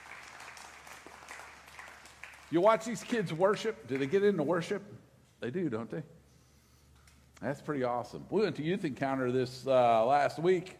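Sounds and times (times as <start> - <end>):
round of applause: 0.0 - 4.2
speech: 2.5 - 6.2, 7.4 - 10.7.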